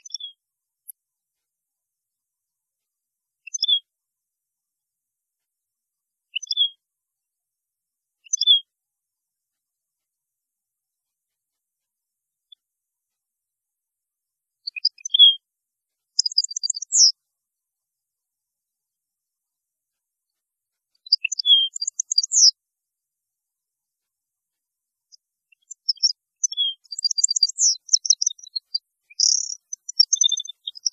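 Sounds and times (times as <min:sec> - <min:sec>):
European goldfinch song: 0:00.0 - 0:00.4, 0:03.4 - 0:03.8, 0:06.3 - 0:06.8, 0:08.2 - 0:08.7, 0:14.7 - 0:15.4, 0:16.2 - 0:17.2, 0:21.0 - 0:22.6, 0:25.5 - 0:30.9.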